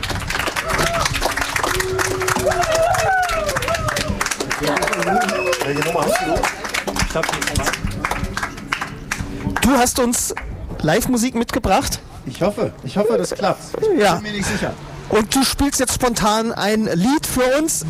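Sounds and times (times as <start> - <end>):
audience applause: 0.0 - 9.9
speech: 5.1 - 7.8, 9.6 - 17.8.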